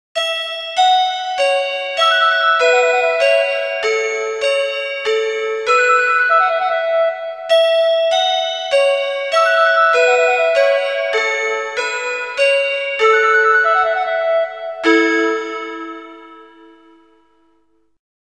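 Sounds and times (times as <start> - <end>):
chime: 0.2 - 17.7.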